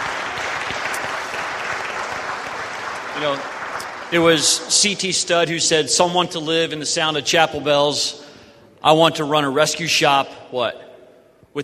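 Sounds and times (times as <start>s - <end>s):
audience applause: 0.0s - 5.1s
speech: 3.2s - 8.2s, 8.8s - 10.8s.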